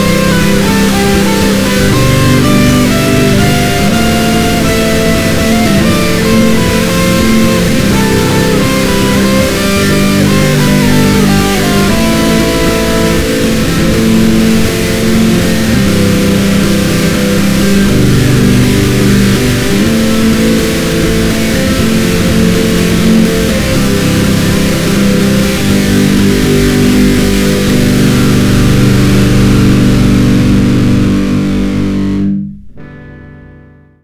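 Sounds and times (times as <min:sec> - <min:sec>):
guitar test: 0:00.0 - 0:34.0.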